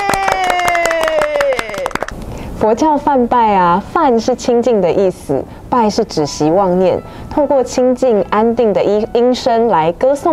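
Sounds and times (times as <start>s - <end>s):
applause: 0.0s - 2.2s
speech: 2.6s - 10.3s.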